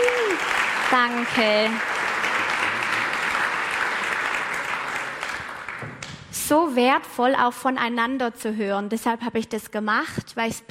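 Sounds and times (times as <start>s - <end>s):
audience applause: 0.0s - 6.1s
speech: 0.9s - 1.9s, 6.5s - 10.7s.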